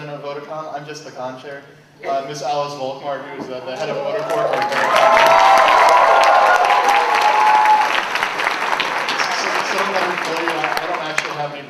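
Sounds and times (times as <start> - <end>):
speech: 0.3 - 5.7, 11.4 - 11.6
audience applause: 4.2 - 11.6.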